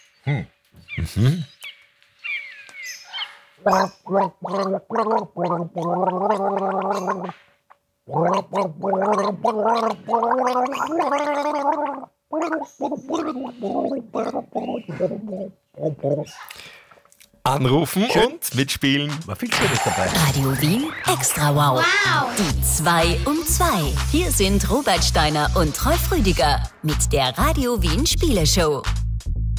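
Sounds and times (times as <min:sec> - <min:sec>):
speech: 0:00.2 - 0:01.6, 0:03.6 - 0:07.4, 0:08.1 - 0:16.8, 0:17.5 - 0:29.0
person gargling a melody: 0:03.7 - 0:07.3, 0:08.1 - 0:16.3.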